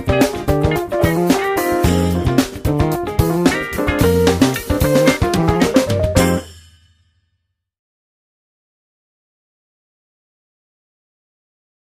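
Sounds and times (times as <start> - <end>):
bass guitar jamming: 0.0 - 6.4.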